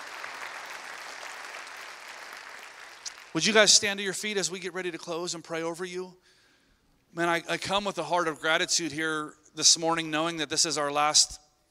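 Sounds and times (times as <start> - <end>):
church congregation applause in a sanctuary: 0.0 - 4.0
speech: 3.3 - 6.4, 7.1 - 11.4.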